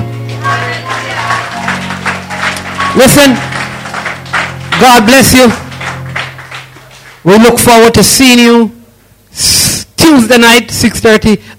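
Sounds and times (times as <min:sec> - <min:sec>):
audience clapping and cheering: 0:00.0 - 0:07.9
sustained organ chords: 0:00.0 - 0:08.2
speech: 0:03.0 - 0:03.5, 0:04.8 - 0:05.6, 0:07.2 - 0:08.8, 0:10.1 - 0:11.5.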